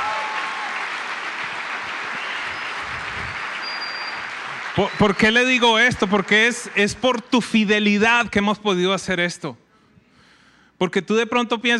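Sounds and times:
audience applause: 0:00.0 - 0:07.2
speech: 0:04.8 - 0:09.6, 0:10.8 - 0:11.7.

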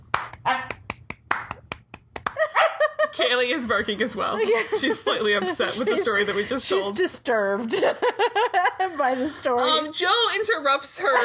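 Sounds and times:
sparse polite golf clap: 0:00.0 - 0:02.5
laughter: 0:02.3 - 0:03.3, 0:04.0 - 0:09.6, 0:11.0 - 0:11.2
speech: 0:03.2 - 0:11.2.

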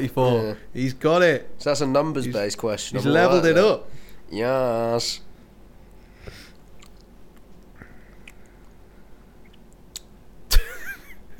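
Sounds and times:
speech: 0:00.0 - 0:05.3
person chewing food noisily: 0:06.4 - 0:10.2.

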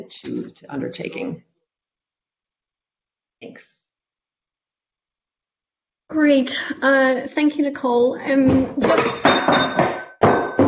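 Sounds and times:
speech: 0:00.0 - 0:01.5, 0:03.4 - 0:03.8, 0:06.1 - 0:09.8
glass dropping and clattering: 0:08.5 - 0:10.6.

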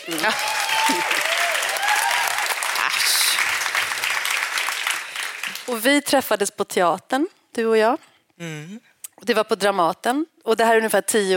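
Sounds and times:
speech: 0:00.0 - 0:01.2, 0:05.7 - 0:11.3
audience applause: 0:00.0 - 0:05.7.

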